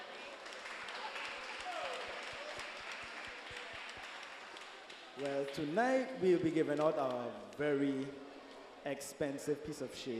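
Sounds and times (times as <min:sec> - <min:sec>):
audience applause: 0:00.0 - 0:05.7
speech: 0:05.2 - 0:10.1.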